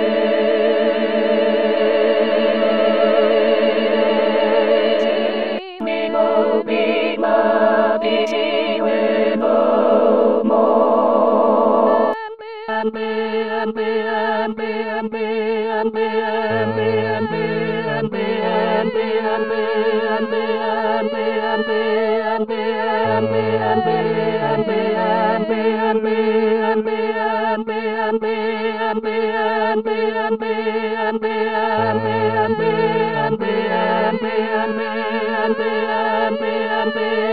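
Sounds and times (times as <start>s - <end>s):
full choir singing: 0.0s - 37.3s.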